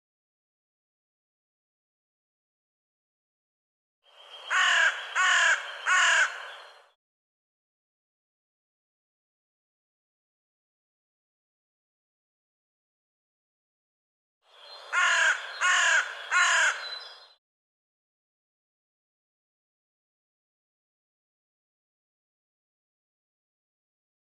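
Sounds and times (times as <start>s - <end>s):
crow-like bird cawing: 4.4s - 6.6s, 14.9s - 17.0s.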